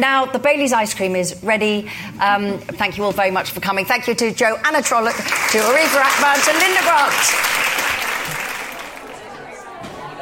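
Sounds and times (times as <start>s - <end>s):
speech: 0.0s - 7.7s
audience clapping after a book talk: 4.9s - 9.8s
audience chatter filing out after a book talk: 8.2s - 10.2s.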